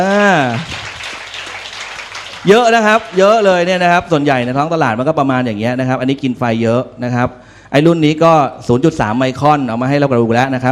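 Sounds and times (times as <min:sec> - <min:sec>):
speech: 0:00.0 - 0:00.8, 0:02.4 - 0:10.7
audience applause: 0:00.0 - 0:04.4.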